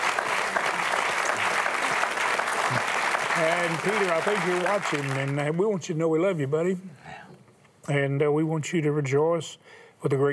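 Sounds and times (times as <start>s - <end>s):
audience applause: 0.0s - 5.6s
speech: 2.7s - 7.0s, 7.9s - 10.3s.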